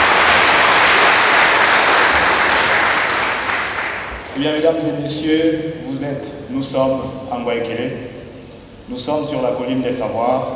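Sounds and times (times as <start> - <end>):
crowd applauding: 0.0 - 4.4
speech: 4.4 - 8.1, 8.9 - 10.5.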